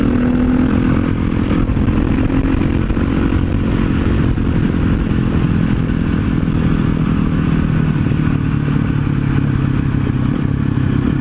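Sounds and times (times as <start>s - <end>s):
supermoto motorcycle cruising on the road at slow speed: 0.0s - 11.1s.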